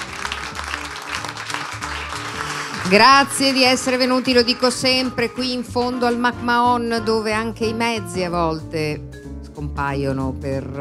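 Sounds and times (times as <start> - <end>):
audience applause: 0.0 - 4.6
speech: 2.8 - 10.7.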